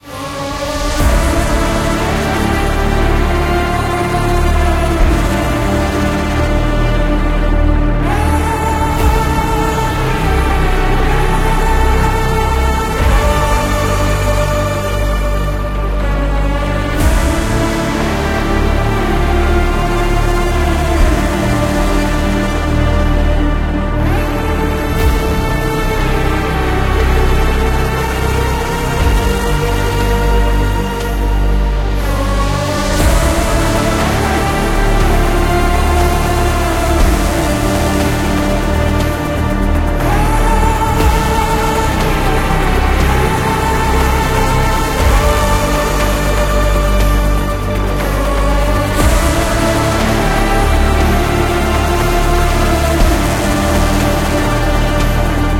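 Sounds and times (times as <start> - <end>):
opening music loop: 0.0 - 55.5.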